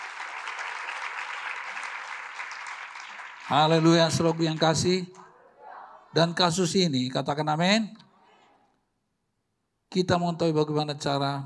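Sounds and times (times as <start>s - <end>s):
audience applause: 0.0s - 5.2s
speech: 3.5s - 5.2s, 6.1s - 8.0s, 10.0s - 11.4s.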